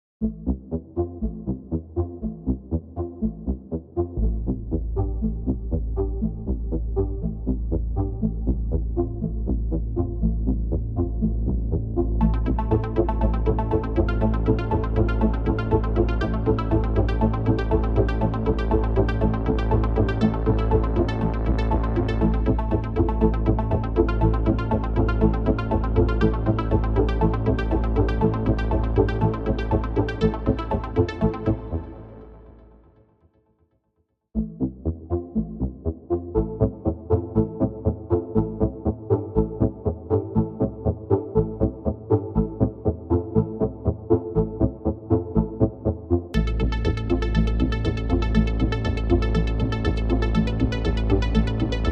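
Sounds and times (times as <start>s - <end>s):
synth: 0.2s - 33.2s, 34.4s - 51.9s.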